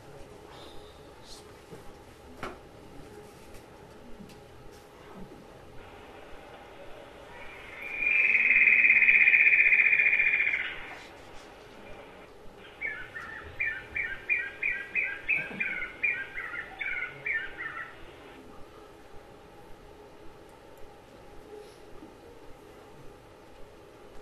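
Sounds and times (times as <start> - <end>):
bird chirping in the forest canopy: 7.3 - 11.0, 12.6 - 18.0.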